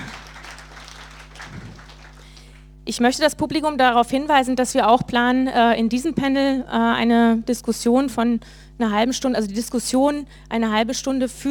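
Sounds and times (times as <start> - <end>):
audience applause at a conference panel: 0.0 - 2.6
low electrical hum: 0.0 - 11.4
speech: 2.9 - 11.4.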